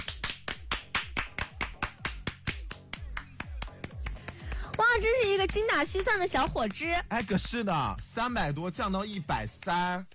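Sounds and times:
steady rhythmic hand clapping: 0:00.0 - 0:10.1
speech: 0:05.0 - 0:10.1.

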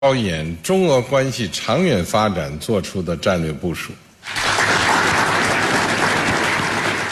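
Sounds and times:
speech: 0:00.0 - 0:04.4
warm applause: 0:04.2 - 0:07.0.

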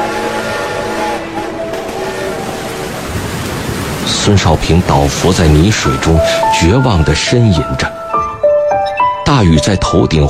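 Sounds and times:
steady coal train whistle: 0:00.0 - 0:02.9
coal train rumbling past: 0:00.0 - 0:08.7
speech: 0:04.3 - 0:08.0, 0:09.3 - 0:10.2.

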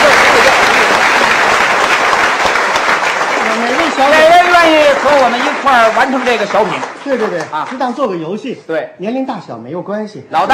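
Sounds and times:
audience applause: 0:00.0 - 0:08.2
speech: 0:05.0 - 0:10.5.

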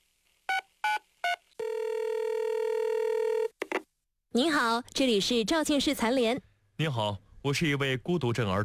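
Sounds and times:
telephone number being dialed DTMF tones: 0:00.5 - 0:03.6
speech: 0:04.4 - 0:08.6.

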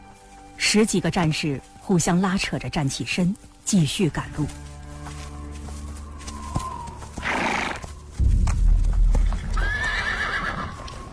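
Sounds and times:
war horse hooves clopping: 0:00.0 - 0:11.1
speech: 0:00.7 - 0:04.7
war horse neighing restlessly: 0:07.2 - 0:07.8, 0:09.5 - 0:11.0
war horse snorting: 0:07.2 - 0:07.8.

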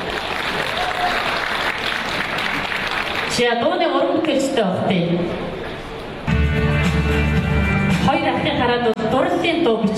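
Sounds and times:
audience applause at a Mongolian song event: 0:00.0 - 0:03.3
speech: 0:03.4 - 0:05.5, 0:07.1 - 0:09.9.

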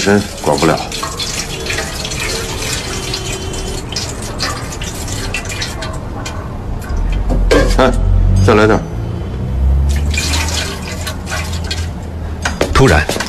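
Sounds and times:
speech: 0:00.0 - 0:01.2, 0:07.8 - 0:08.9, 0:12.8 - 0:13.2
water splashing while washing off body: 0:00.0 - 0:08.0, 0:09.8 - 0:12.9.

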